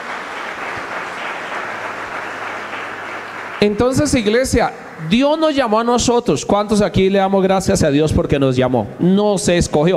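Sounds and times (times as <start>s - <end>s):
church audience applause: 0.0s - 5.1s
speech: 3.6s - 9.9s.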